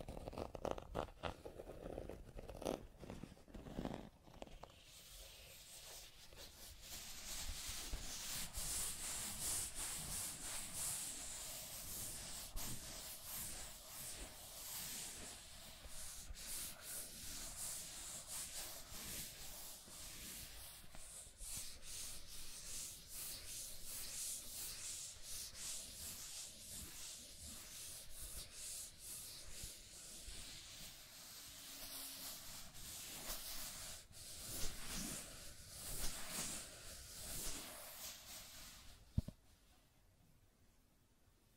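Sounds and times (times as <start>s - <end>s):
scratching and tracing over a surface: 0.0s - 39.4s.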